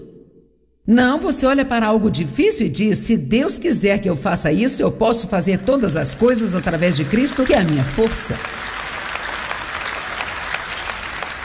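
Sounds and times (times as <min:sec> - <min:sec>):
speech: 0:00.9 - 0:08.8
audience applauding: 0:05.6 - 0:11.4.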